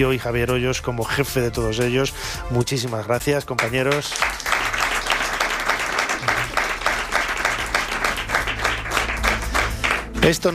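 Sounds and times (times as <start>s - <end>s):
speech: 0.0s - 4.4s, 10.3s - 10.5s
audience applause: 3.6s - 10.5s.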